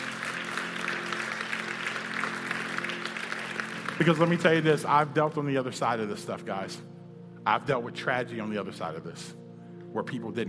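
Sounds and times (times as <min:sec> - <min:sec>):
audience applause at an uplifting talk: 0:00.0 - 0:04.8
speech: 0:04.0 - 0:09.4, 0:10.0 - 0:10.4.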